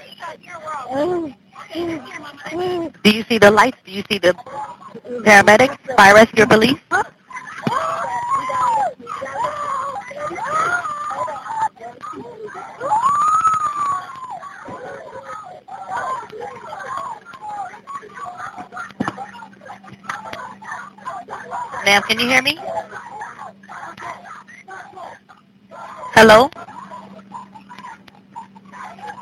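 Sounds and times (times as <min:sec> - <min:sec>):
speech: 0:00.3 - 0:07.1, 0:21.8 - 0:22.7, 0:26.2 - 0:26.6
people screaming in the background of an emergency call about a shooting: 0:07.3 - 0:29.1.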